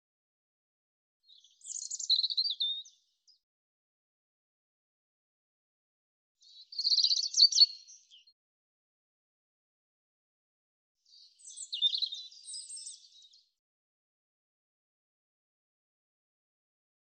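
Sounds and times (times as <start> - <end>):
European robin singing: 1.2 - 3.4, 6.4 - 8.4, 11.0 - 13.6.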